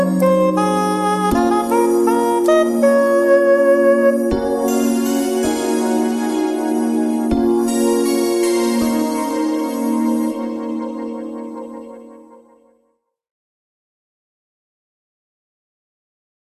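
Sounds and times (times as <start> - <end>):
soul saxophone music: 0.0 - 12.2.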